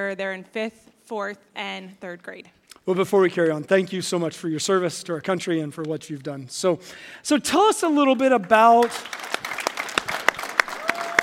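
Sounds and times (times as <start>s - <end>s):
speech: 0.0s - 9.4s
audience applauding: 8.3s - 11.2s.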